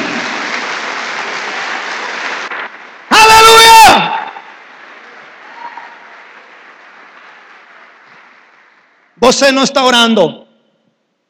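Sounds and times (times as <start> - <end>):
audience applause: 0.0 - 9.0
speech: 9.2 - 10.4.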